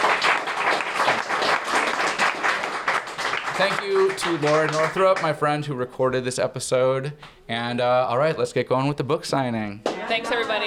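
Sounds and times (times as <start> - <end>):
audience applause: 0.0 - 5.4
speech: 3.6 - 10.6.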